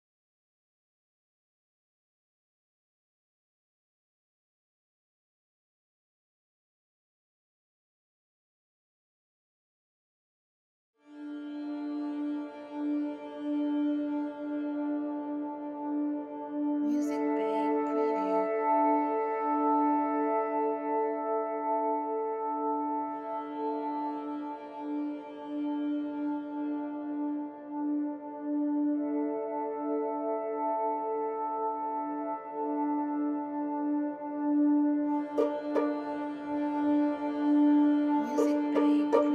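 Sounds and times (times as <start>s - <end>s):
documentary tension ambience music: 11.6s - 39.3s.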